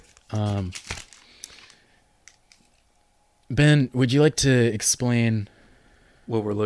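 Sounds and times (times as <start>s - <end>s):
plastic wrapper of a booster card pack being opened: 0.0s - 3.0s
speech: 0.3s - 1.0s, 3.5s - 5.5s, 6.3s - 6.6s.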